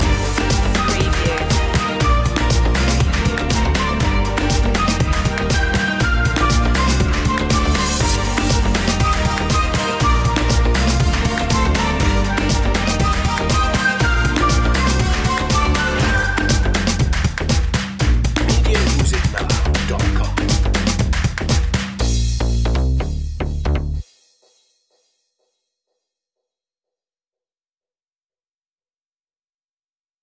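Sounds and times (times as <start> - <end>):
latin groove loop: 0.0 - 24.1.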